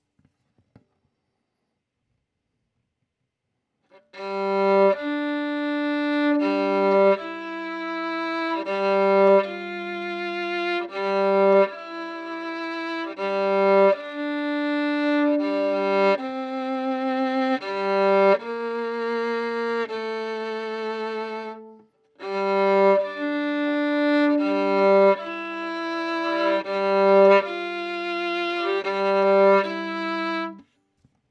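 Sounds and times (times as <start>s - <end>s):
violin: 4.0s - 30.7s.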